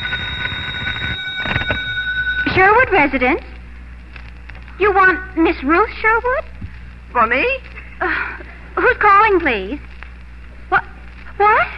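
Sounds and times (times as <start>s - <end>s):
telephone ringing: 0.0s - 3.3s
low rumbling noise: 0.0s - 11.7s
speech: 2.5s - 3.5s, 4.8s - 6.5s, 7.1s - 9.9s, 10.7s - 11.7s.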